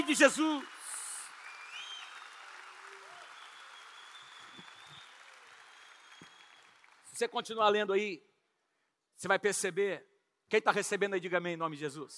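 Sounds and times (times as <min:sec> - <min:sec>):
audience applause: 0:00.0 - 0:07.1
speech: 0:00.1 - 0:00.8, 0:07.2 - 0:08.3, 0:09.2 - 0:12.1.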